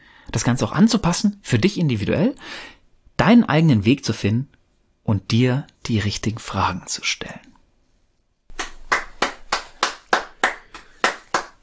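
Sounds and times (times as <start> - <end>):
speech: 0.3 - 7.5
single person clapping hands: 8.5 - 11.6.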